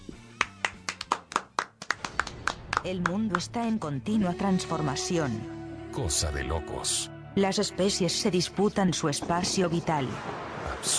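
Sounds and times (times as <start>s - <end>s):
hand clapping: 0.1s - 3.5s
speech: 2.8s - 10.9s.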